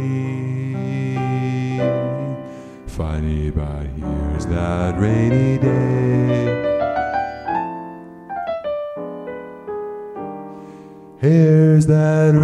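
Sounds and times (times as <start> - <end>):
person practising singing: 0.0 - 8.1, 10.6 - 12.4.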